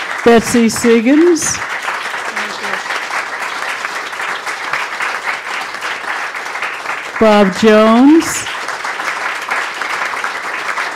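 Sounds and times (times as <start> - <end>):
audience applause at a live panel event: 0.0 - 10.9
speech: 0.2 - 1.7, 7.2 - 8.5.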